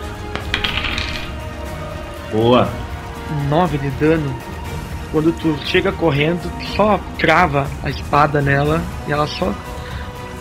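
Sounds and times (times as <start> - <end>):
dice rolling on a table: 0.3 - 1.4
speech: 2.3 - 9.7.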